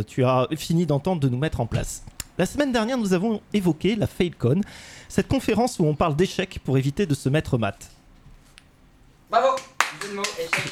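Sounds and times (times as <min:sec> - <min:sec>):
speech: 0:00.0 - 0:08.0, 0:09.3 - 0:10.6
hand clapping: 0:09.5 - 0:10.6.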